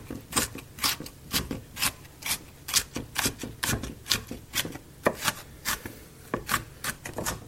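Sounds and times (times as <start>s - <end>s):
knife chopping green capsicum: 0.0s - 7.4s.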